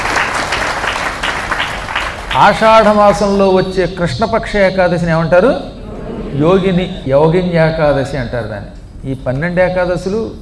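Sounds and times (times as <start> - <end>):
audience clapping at a Telugu spiritual discourse about Yogini Ekadashi: 0.0 - 3.0
speech: 2.4 - 5.7, 6.3 - 10.3.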